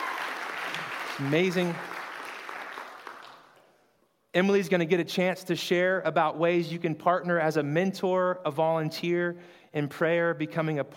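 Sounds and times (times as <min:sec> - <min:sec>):
church audience clapping: 0:00.0 - 0:03.8
speech: 0:01.2 - 0:01.9, 0:04.4 - 0:10.9.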